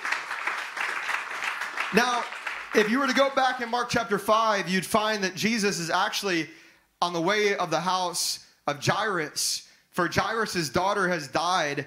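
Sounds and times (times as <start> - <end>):
audience applause: 0.0 - 3.8
speech: 1.9 - 11.8.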